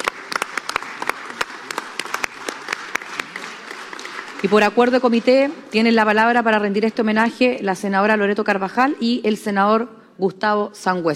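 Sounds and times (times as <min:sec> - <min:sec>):
audience applause: 0:00.0 - 0:05.9
speech: 0:04.4 - 0:11.1.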